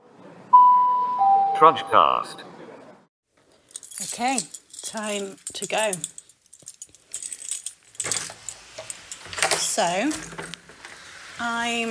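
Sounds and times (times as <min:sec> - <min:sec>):
speech: 0:01.6 - 0:02.5, 0:04.2 - 0:06.2, 0:09.8 - 0:10.6, 0:11.4 - 0:11.8
bright metallic jingles: 0:03.4 - 0:10.6
door opening and shutting: 0:08.0 - 0:11.0.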